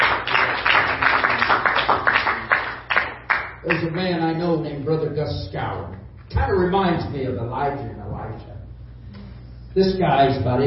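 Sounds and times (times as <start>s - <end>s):
audience clapping hands in a steady rhythmic beat: 0.0s - 4.4s
speech: 3.7s - 8.6s, 9.8s - 10.6s.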